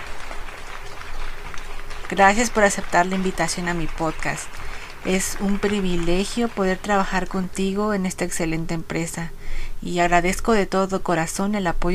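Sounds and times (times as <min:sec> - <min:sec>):
applause: 0:00.0 - 0:07.7
speech: 0:02.1 - 0:11.9.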